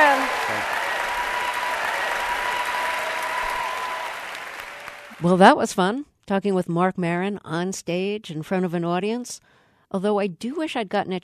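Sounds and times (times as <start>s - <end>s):
audience applause: 0.0s - 5.3s
speech: 5.2s - 11.2s.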